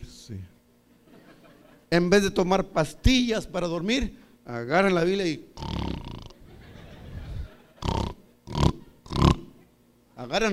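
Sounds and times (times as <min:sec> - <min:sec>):
speech: 0:00.3 - 0:00.5, 0:01.9 - 0:05.8, 0:10.3 - 0:10.5
laughter: 0:00.9 - 0:01.9, 0:06.4 - 0:08.0, 0:08.8 - 0:09.7
man imitating snoring: 0:05.6 - 0:06.4, 0:07.3 - 0:09.5.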